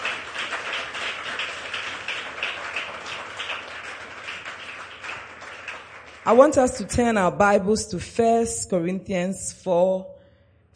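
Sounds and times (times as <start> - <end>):
audience clapping: 0.0 - 7.0
speech: 6.3 - 10.2.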